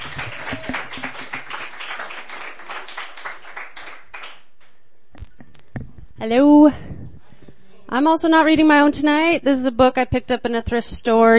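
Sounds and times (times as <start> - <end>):
audience clapping: 0.0 - 4.8
speech: 6.2 - 6.8, 7.9 - 11.3.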